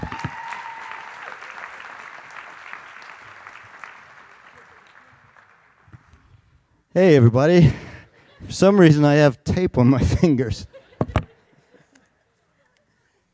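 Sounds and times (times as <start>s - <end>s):
audience round of applause: 0.0s - 6.2s
speech: 7.0s - 7.9s, 8.5s - 10.7s.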